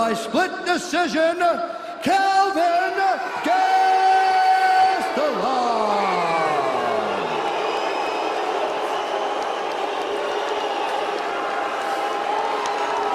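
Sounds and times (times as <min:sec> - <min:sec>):
speech: 0:00.0 - 0:03.8
Rio arena crowd reacting to decision: 0:02.7 - 0:13.1.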